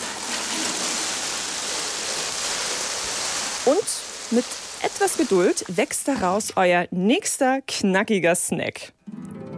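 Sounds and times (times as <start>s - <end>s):
watering plants: 0.0s - 6.6s
speech: 3.7s - 9.0s.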